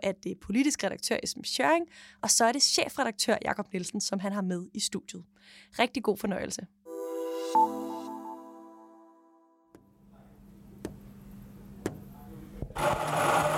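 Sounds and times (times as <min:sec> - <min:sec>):
speech: 0:00.0 - 0:06.8, 0:07.5 - 0:07.8
tonal chime: 0:06.9 - 0:09.7
coffee machine running: 0:12.8 - 0:13.5.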